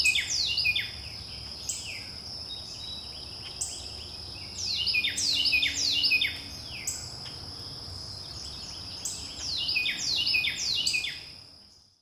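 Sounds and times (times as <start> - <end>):
wren singing: 0.0 - 12.0.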